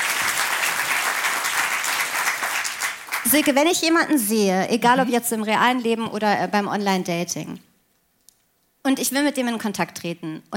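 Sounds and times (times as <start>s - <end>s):
audience applause: 0.0s - 3.4s
speech: 3.2s - 7.7s, 8.9s - 10.5s.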